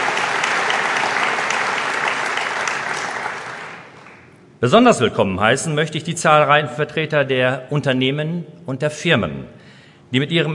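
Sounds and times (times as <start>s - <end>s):
audience applause: 0.0s - 4.3s
speech: 4.6s - 10.5s.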